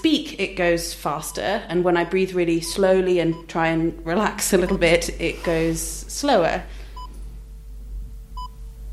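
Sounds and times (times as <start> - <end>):
speech: 0.0 - 6.8
low steady hum: 0.0 - 8.9
heart monitor beeps: 2.6 - 3.5, 4.6 - 5.6, 8.4 - 8.6.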